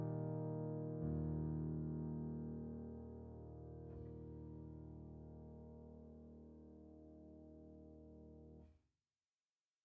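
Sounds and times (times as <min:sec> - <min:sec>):
software piano chords: 0:00.0 - 0:08.7.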